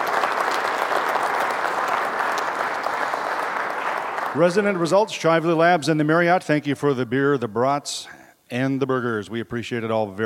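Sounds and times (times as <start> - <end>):
audience applause: 0.0 - 4.9
speech: 4.4 - 10.2.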